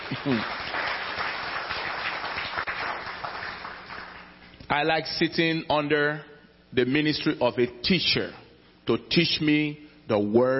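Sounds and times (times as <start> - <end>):
audience clapping: 0.0 - 4.4
speech: 0.2 - 0.6, 4.7 - 10.5.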